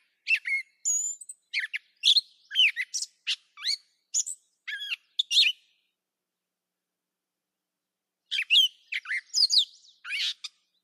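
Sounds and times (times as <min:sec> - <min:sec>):
catbird singing mixed squeaky harsh and whistled notes: 0:00.2 - 0:05.7, 0:08.3 - 0:10.8.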